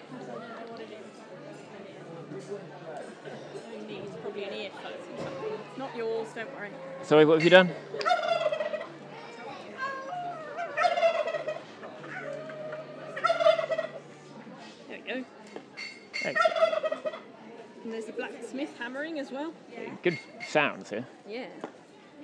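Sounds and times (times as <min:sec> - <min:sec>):
speech: 0:02.4 - 0:08.0, 0:20.0 - 0:21.9
turkey gobbling: 0:06.8 - 0:09.0, 0:10.1 - 0:14.0, 0:16.2 - 0:17.3.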